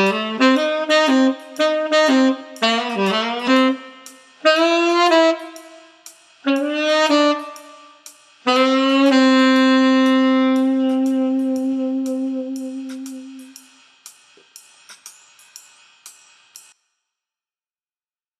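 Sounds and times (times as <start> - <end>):
tenor sax playing jazz swing: 0.0 - 13.8.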